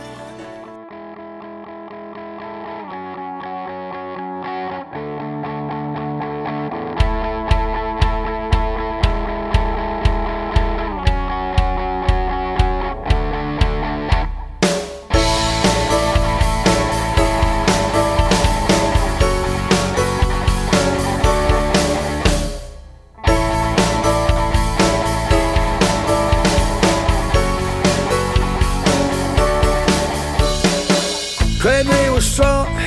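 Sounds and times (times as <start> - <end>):
distorted guitar chord pattern: 0.0 - 32.8
loud pop punk band with crashing cymbals: 7.0 - 32.8
steady driving drum beat: 7.0 - 32.8.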